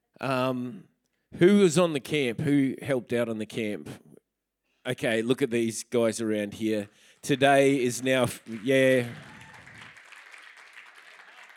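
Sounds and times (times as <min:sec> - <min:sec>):
speech: 0:00.2 - 0:04.0, 0:04.8 - 0:09.3
crowd applause: 0:07.3 - 0:11.5.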